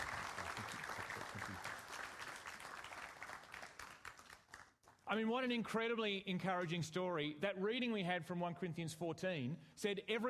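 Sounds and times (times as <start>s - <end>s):
audience applause: 0.0s - 4.8s
speech: 5.1s - 10.2s.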